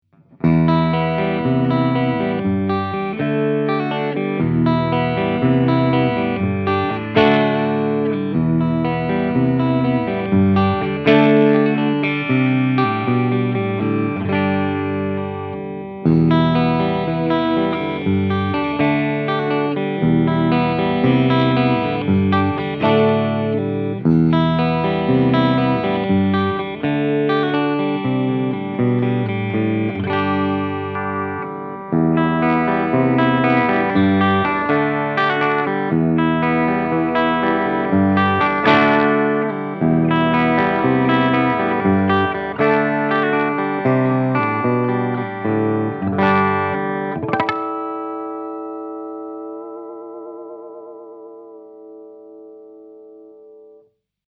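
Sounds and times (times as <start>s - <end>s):
BC Rich Mockingbird guitar with humbucker and three-way switch: 0.0s - 53.9s.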